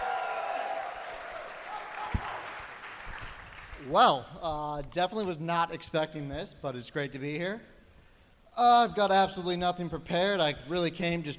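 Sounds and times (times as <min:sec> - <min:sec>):
audience applause at a live comedy show in Milwaukee: 0:00.0 - 0:03.9
speech: 0:03.8 - 0:07.7, 0:08.6 - 0:11.3.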